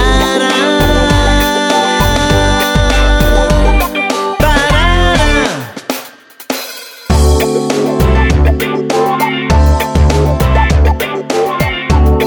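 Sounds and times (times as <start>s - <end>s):
instrumental music without lyrics: 0.0s - 12.2s.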